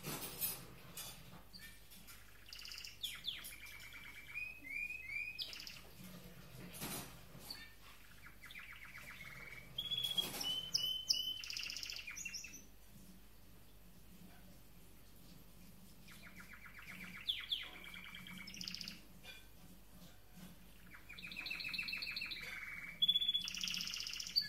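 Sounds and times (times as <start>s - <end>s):
canary singing: 1.5s - 6.6s, 7.3s - 12.8s, 16.0s - 19.4s, 20.0s - 24.4s.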